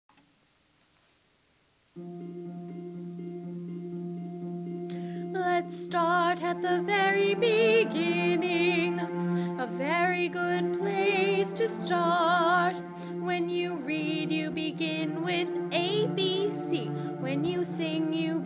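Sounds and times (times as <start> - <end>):
person singing: 4.8 - 18.4.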